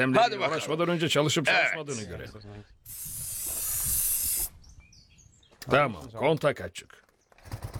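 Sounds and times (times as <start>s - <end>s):
speech: 0.0s - 3.1s, 5.6s - 7.0s
aerosol spray of starting fluid hissing: 2.9s - 4.6s.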